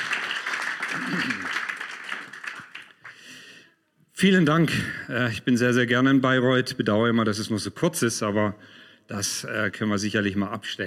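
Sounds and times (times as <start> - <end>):
audience applause: 0.0 - 3.3
speech: 4.2 - 10.8.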